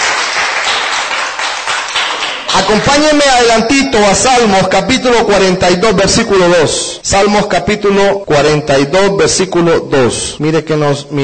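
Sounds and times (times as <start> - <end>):
congregation clapping hands in church: 0.0 - 3.7
speech: 2.6 - 11.2.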